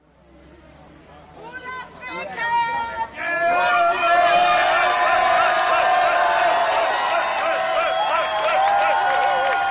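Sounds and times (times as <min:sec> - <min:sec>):
crowd in the street cheering and shouting: 0:02.6 - 0:09.6
clapping: 0:05.2 - 0:09.6.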